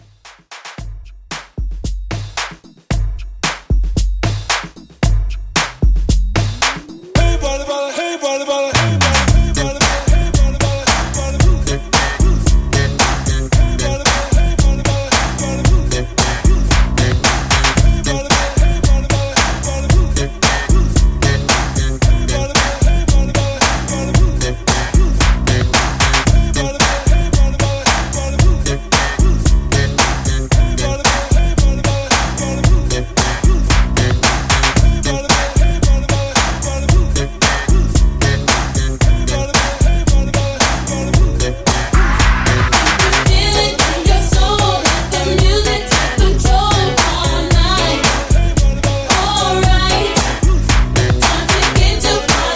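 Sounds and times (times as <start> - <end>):
90s R&B beat: 0.0 - 52.5.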